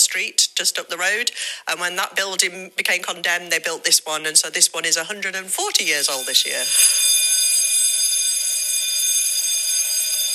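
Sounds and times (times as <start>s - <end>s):
speech: 0.1s - 7.2s
old school bell ringing: 5.8s - 10.3s.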